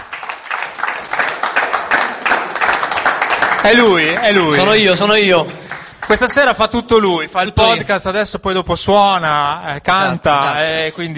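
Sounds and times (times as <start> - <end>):
audience applause for guest taking stage: 0.0 - 6.5
speech: 3.6 - 11.1.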